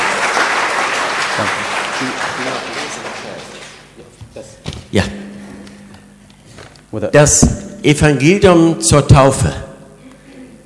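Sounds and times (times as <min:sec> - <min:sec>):
applause: 0:00.0 - 0:04.0
speech: 0:04.4 - 0:05.2, 0:07.0 - 0:09.6.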